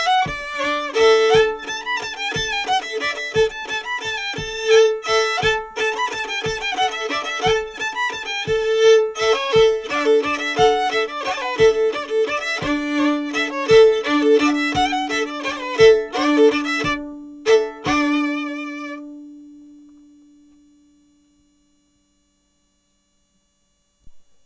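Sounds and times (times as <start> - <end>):
mazurka: 0.0 - 19.2.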